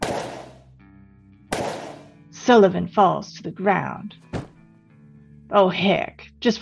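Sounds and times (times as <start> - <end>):
gunshots: 0.0 - 0.6, 1.5 - 2.2
speech: 2.5 - 4.3, 5.5 - 6.5.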